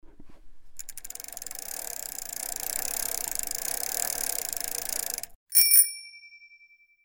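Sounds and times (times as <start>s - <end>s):
bicycle: 0.1s - 5.9s.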